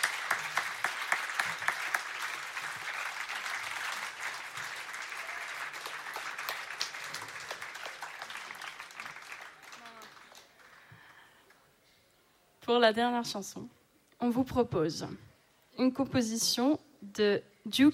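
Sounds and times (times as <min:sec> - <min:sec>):
audience applauding: 0:00.0 - 0:11.6
speech: 0:12.7 - 0:17.9.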